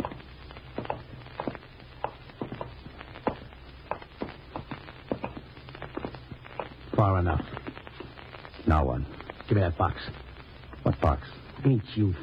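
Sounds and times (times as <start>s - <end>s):
footsteps walking: 0.0s - 8.2s
speech: 7.0s - 7.6s, 8.7s - 10.2s, 11.0s - 12.2s.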